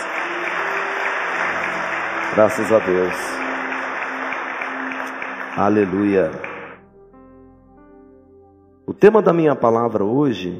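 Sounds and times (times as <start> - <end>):
audience applause: 0.0 - 6.8
speech: 2.4 - 3.5, 5.6 - 6.5, 8.9 - 10.5.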